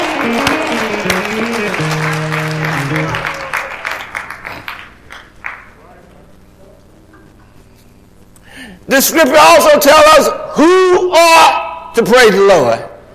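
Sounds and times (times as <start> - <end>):
hands clapping: 0.0 - 5.8
speech: 9.0 - 12.9.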